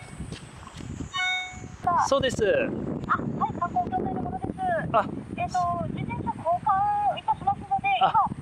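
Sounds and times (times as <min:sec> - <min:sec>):
mobile phone ringing: 0:01.1 - 0:01.8
speech: 0:02.0 - 0:04.2, 0:04.8 - 0:07.3, 0:08.0 - 0:08.3.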